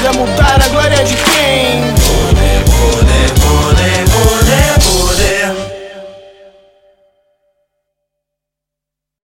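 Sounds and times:
interlude beat: 0.0s - 5.8s.

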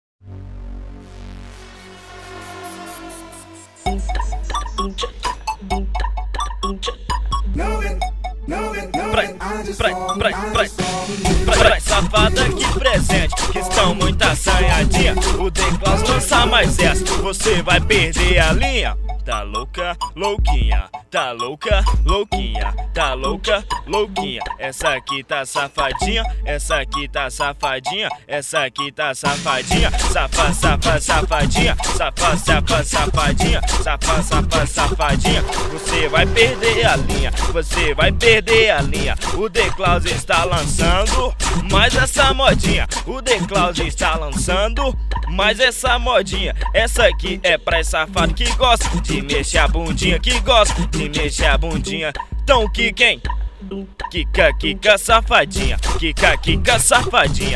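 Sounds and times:
funk music: 1.6s - 28.2s, 29.2s - 53.1s, 53.7s - 57.5s.

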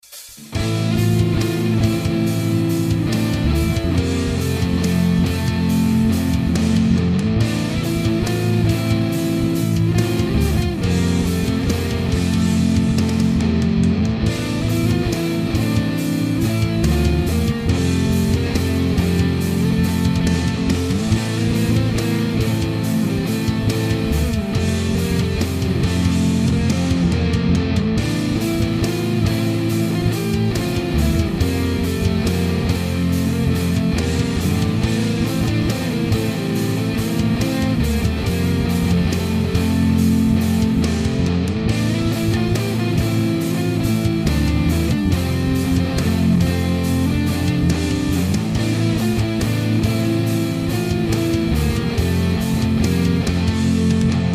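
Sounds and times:
instrumental music: 0.0s - 54.3s.

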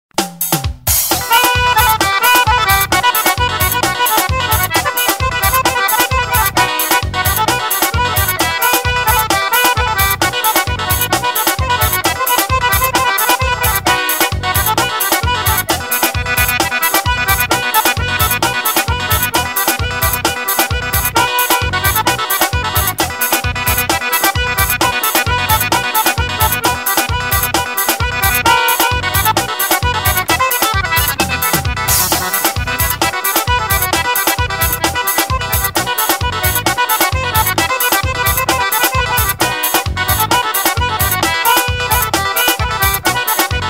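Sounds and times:
forro solo: 0.2s - 43.6s.

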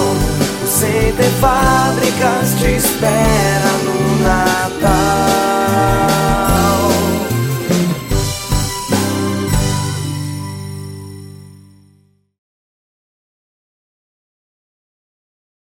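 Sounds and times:
Christmas jingle: 0.0s - 12.1s.

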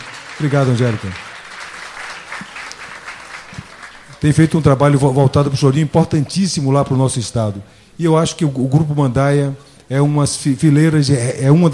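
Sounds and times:
audience applause for a guest at a choro music event: 0.0s - 4.7s
speech: 0.4s - 1.3s, 4.2s - 11.7s.

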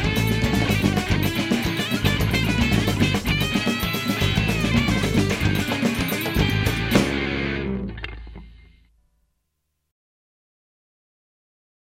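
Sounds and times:
maracatu percussion: 0.0s - 7.4s.

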